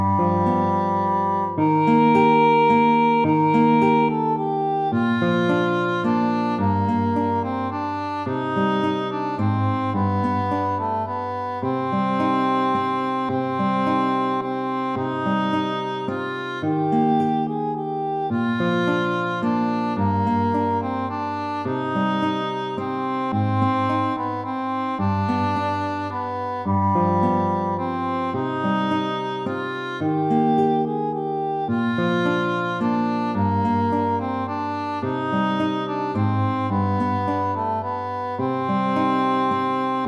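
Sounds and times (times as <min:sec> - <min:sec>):
guitar melody: 0:00.0 - 0:40.0.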